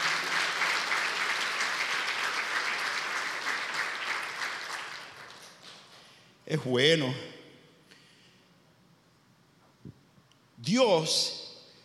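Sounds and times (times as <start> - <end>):
loud applause from audience: 0.0 - 6.0
speech: 6.5 - 7.3, 10.7 - 11.4.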